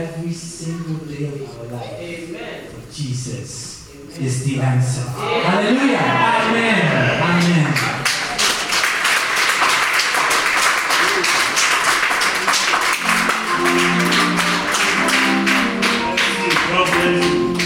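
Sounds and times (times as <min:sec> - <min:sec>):
speech: 0:00.0 - 0:07.9
crowd clapping: 0:07.2 - 0:17.6.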